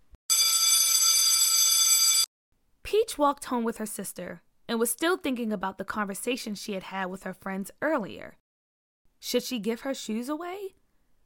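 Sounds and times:
electric school bell ringing: 0.3s - 2.3s
speech: 2.9s - 8.4s, 9.2s - 10.8s.

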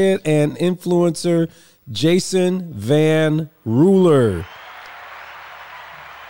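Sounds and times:
speech: 0.0s - 4.6s
welcoming crowd applause: 4.4s - 6.2s.

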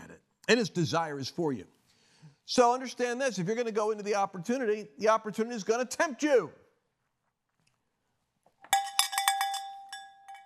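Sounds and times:
speech: 0.5s - 1.8s, 2.5s - 6.6s
small handbell ringing: 8.8s - 10.4s.

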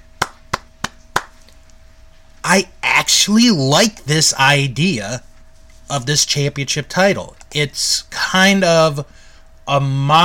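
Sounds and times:
single person clapping hands: 0.2s - 1.4s
speech: 2.5s - 5.3s, 5.9s - 10.2s.

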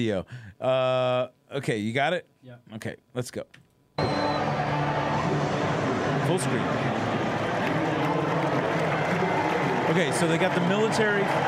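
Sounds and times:
speech: 0.0s - 4.4s, 6.3s - 7.1s, 9.9s - 11.4s
faint murmur of crowd voices: 4.0s - 11.4s
audience clapping: 4.3s - 11.4s.

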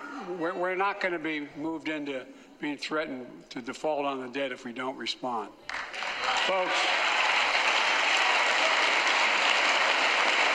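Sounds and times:
speech: 0.3s - 7.0s
crowd booing: 6.2s - 10.5s.

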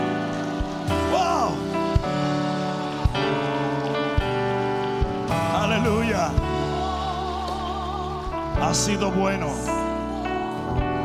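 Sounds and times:
crowd applause: 0.0s - 8.3s
sustained music: 0.0s - 11.0s
speech: 8.6s - 9.8s.

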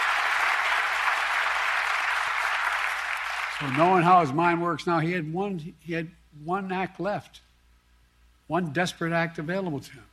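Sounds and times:
crowd cheering and applauding: 0.0s - 4.4s
speech: 3.6s - 7.4s, 8.5s - 10.1s.

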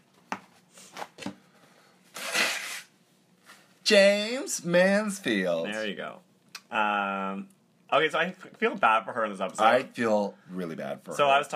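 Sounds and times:
person blowing their nose: 2.1s - 3.0s
speech: 3.9s - 11.5s.

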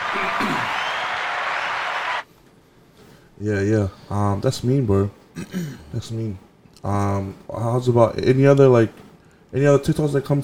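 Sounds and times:
applause: 0.0s - 2.2s
speech: 3.4s - 10.4s.

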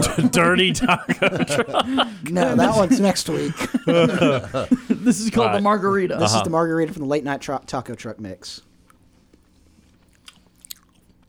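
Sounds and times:
laughter: 0.0s - 7.0s
speech: 0.2s - 8.7s
chewing and mouth smacking while tasting snack: 8.8s - 11.2s.

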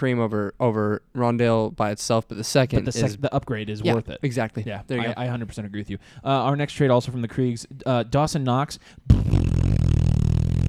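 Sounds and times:
speech: 0.0s - 9.5s
big fat fart noise: 9.1s - 10.6s.

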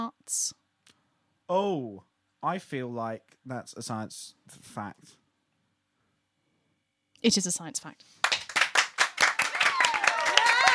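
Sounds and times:
speech: 0.3s - 0.6s, 1.5s - 5.2s, 7.2s - 8.2s
round of applause: 8.2s - 10.7s.

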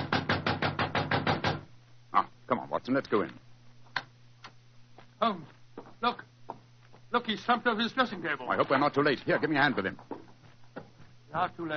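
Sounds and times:
knocking on a dressing room door: 0.0s - 1.7s
speech: 2.2s - 3.4s, 5.2s - 6.2s, 7.1s - 10.1s, 11.3s - 11.7s.

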